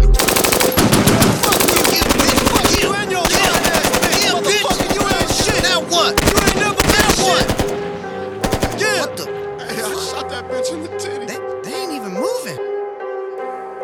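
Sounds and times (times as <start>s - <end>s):
automatic gunfire: 0.2s - 9.2s
voices: 0.2s - 12.6s.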